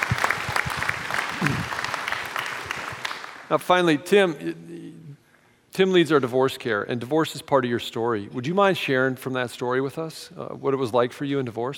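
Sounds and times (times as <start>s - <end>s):
crowd clapping: 0.0s - 3.7s
speech: 3.5s - 4.7s, 5.8s - 11.7s.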